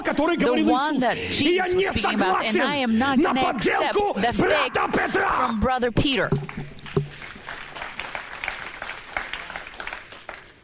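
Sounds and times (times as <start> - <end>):
speech: 0.2 - 6.6
thin scattered applause from a small audience: 6.4 - 10.6.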